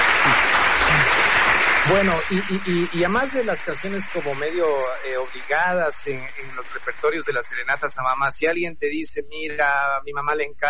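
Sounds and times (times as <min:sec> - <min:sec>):
applause sound effect from a crowd: 0:00.0 - 0:07.8
speech: 0:01.9 - 0:10.6.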